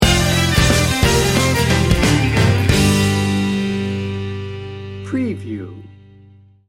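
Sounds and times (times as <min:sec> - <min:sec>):
country music sting bumper: 0:00.0 - 0:05.7.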